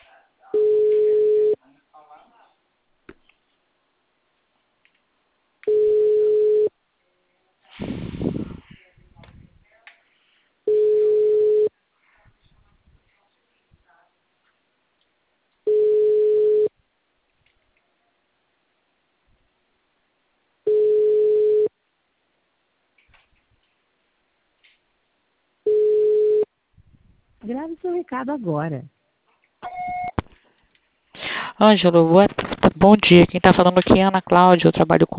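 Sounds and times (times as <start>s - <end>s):
telephone line tones while placing a call: 0.6s - 1.6s, 5.7s - 6.7s, 10.7s - 11.7s, 15.7s - 16.7s, 20.7s - 21.7s, 25.7s - 26.5s, 29.6s - 30.2s
speech: 27.5s - 28.9s, 31.6s - 35.1s.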